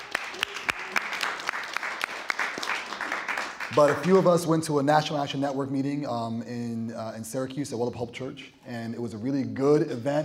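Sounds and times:
audience applause: 0:00.0 - 0:04.3
speech: 0:03.7 - 0:10.2.

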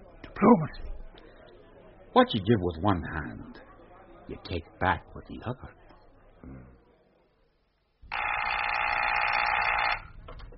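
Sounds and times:
speech: 0:00.4 - 0:00.9, 0:02.1 - 0:03.6, 0:04.3 - 0:05.8, 0:06.4 - 0:06.7
telephone ringing: 0:08.1 - 0:10.2.

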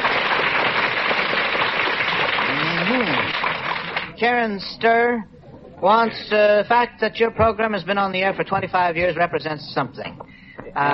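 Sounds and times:
audience applause: 0:00.0 - 0:04.2
speech: 0:04.2 - 0:10.9.

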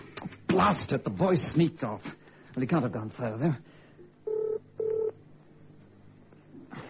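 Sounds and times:
speech: 0:00.6 - 0:03.7
telephone number being dialed, electronic tone beeps: 0:04.3 - 0:05.1.

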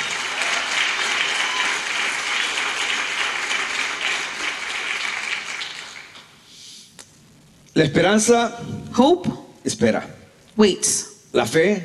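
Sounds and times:
audience applause: 0:00.0 - 0:06.4
speech: 0:07.8 - 0:11.8.

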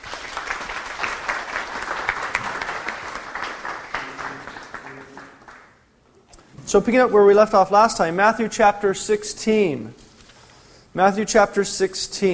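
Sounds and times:
audience applause welcoming a subdeacon at a church teaching gathering: 0:00.0 - 0:05.8
speech: 0:06.7 - 0:10.0, 0:10.9 - 0:12.3.

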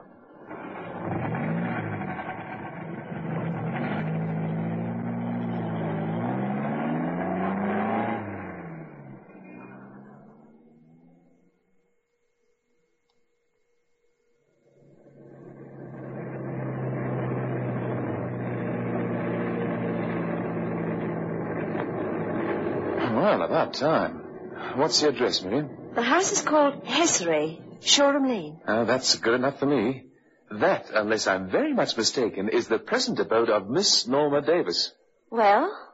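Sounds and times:
car engine running and revving: 0:00.0 - 0:11.6, 0:14.6 - 0:34.9
speech: 0:23.4 - 0:24.2, 0:24.8 - 0:35.8.

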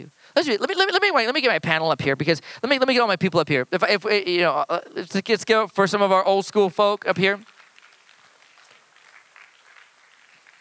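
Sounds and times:
speech: 0:00.0 - 0:07.5
audience clapping: 0:07.1 - 0:10.5.

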